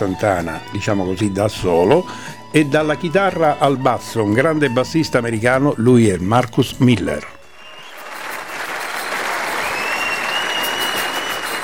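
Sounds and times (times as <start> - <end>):
speech: 0.0 - 7.3
live concert audience applause: 7.5 - 11.6.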